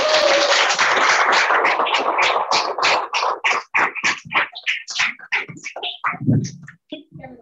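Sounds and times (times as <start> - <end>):
audience clapping: 0.0 - 6.2.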